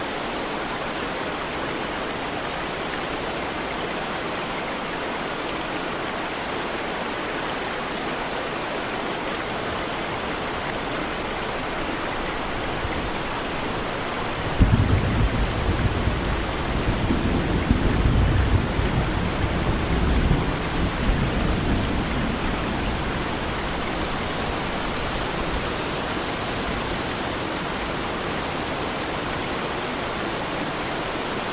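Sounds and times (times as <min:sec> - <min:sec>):
rain falling: 0:00.0 - 0:31.5
thunder rumble: 0:12.5 - 0:28.5.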